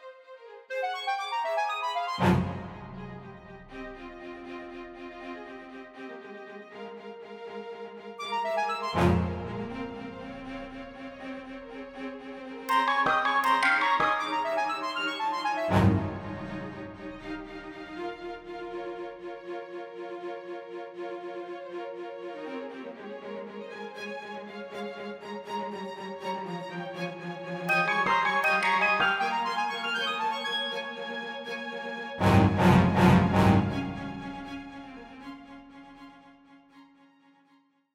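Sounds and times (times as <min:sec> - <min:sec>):
fugato music: 0:00.8 - 0:03.9, 0:08.3 - 0:10.6, 0:12.7 - 0:17.8, 0:27.7 - 0:35.0.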